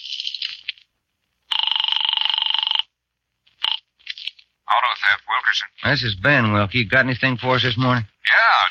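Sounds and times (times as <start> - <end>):
telephone ringing: 1.5 - 3.0, 3.6 - 4.0
speech: 5.6 - 8.6.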